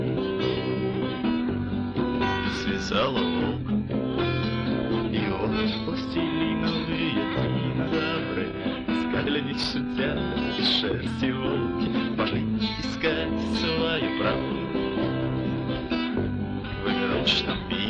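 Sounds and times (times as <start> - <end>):
accordion: 0.0 - 17.8.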